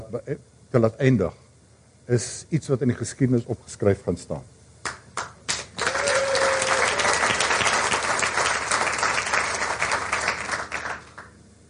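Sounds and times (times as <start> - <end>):
speech: 0.1 - 1.4, 2.1 - 4.6
audience applauding young investigative journalists: 4.8 - 11.4.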